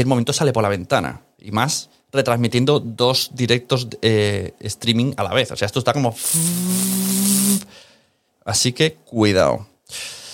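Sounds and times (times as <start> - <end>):
speech: 0.0 - 7.8, 8.4 - 10.2
breath picked up by microphone: 6.2 - 8.3, 9.9 - 10.3.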